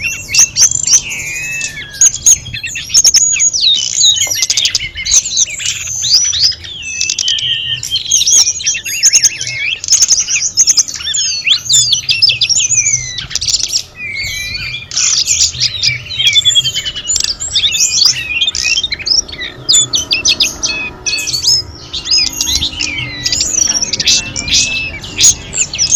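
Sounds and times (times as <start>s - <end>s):
Sunda robins singing together: 0.0s - 25.9s.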